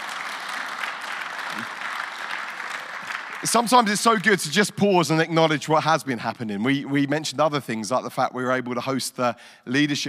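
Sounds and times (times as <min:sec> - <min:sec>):
audience applause: 0:00.0 - 0:04.6
speech: 0:03.4 - 0:10.0.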